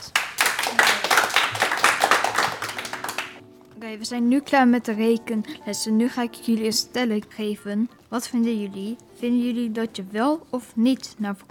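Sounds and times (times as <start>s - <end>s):
audience applause: 0.0s - 3.4s
speech: 3.9s - 11.4s.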